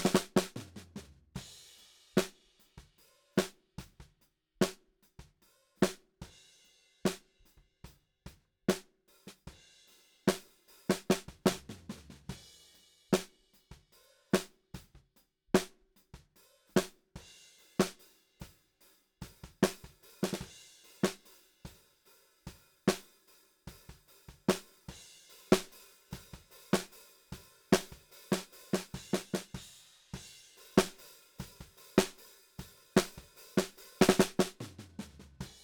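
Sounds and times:
snare drum: 0.0 - 1.6, 2.2 - 4.0, 8.7 - 9.6, 10.3 - 12.4, 13.1 - 13.4, 14.4 - 14.9, 15.6 - 15.8, 16.7 - 17.0, 17.8 - 18.0, 19.2 - 21.3, 23.7 - 35.6.

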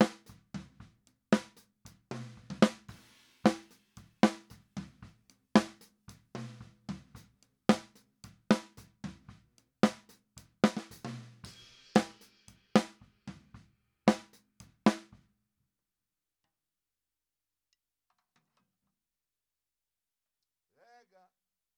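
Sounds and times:
snare drum: 0.0 - 15.2.

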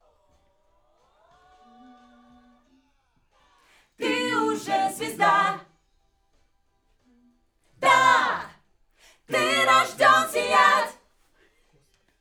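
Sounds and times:
backing vocals on AKG microphone: 4.0 - 5.6, 7.8 - 8.6, 9.3 - 11.0.

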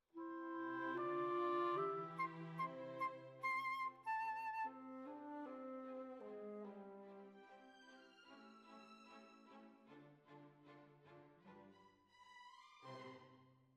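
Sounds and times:
flute: 0.2 - 7.7.

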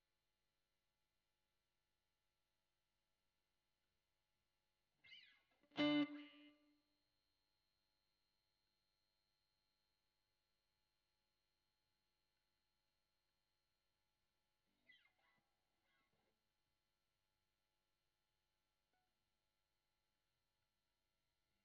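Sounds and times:
guitar recorded with Royer microphone: 5.0 - 6.8.

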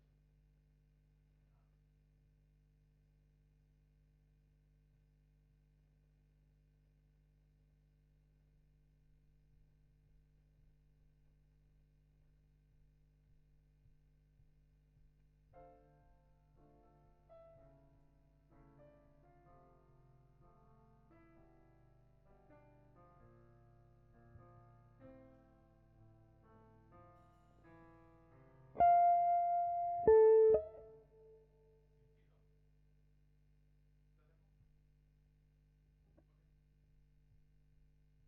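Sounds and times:
guitar: 28.8 - 31.4.

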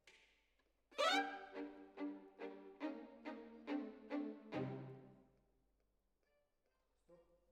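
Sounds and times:
violin solo: 1.0 - 5.2.

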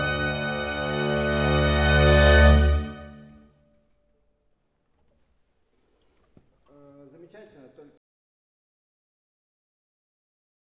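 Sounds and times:
woodwinds: 0.0 - 3.4
strings: 0.0 - 3.5.

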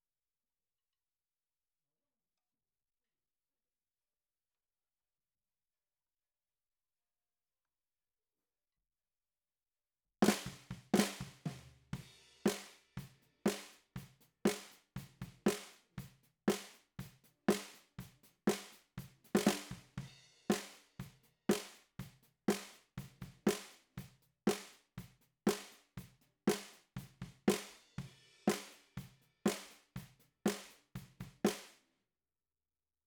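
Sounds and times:
bottom snare drum: 10.2 - 31.8.

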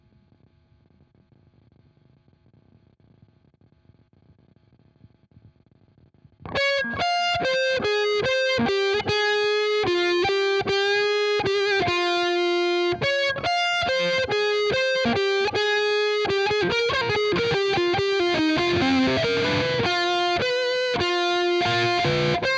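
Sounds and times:
guitar: 6.4 - 22.5.

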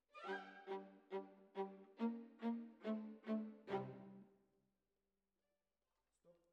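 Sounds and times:
violas: 0.1 - 4.2.

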